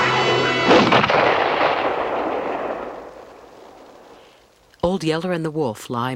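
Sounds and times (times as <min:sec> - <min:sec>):
rifle gunshot with rolling echo: 0:00.6 - 0:04.2
speech: 0:04.9 - 0:06.1.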